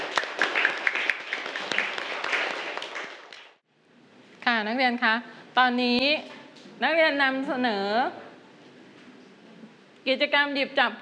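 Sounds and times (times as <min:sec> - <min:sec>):
students clapping hands: 0:00.0 - 0:03.6
speech: 0:04.6 - 0:08.2, 0:10.0 - 0:11.0.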